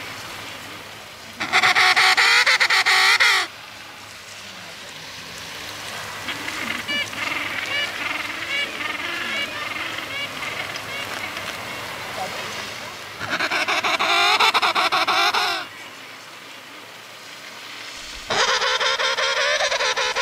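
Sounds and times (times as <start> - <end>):
penguin calls: 1.4 - 3.5, 6.2 - 11.6, 13.2 - 15.7, 18.3 - 20.2.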